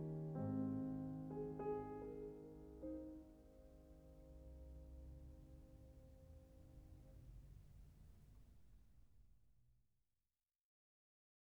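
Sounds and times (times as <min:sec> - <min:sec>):
piano mazurka in A flat: 0:00.0 - 0:07.4.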